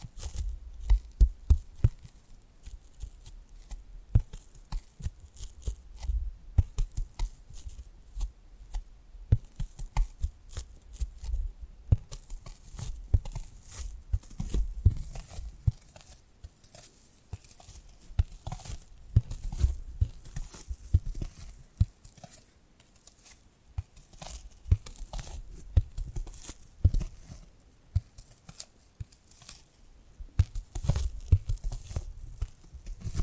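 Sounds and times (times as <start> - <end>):
tapping and scratching: 0.0 - 33.2.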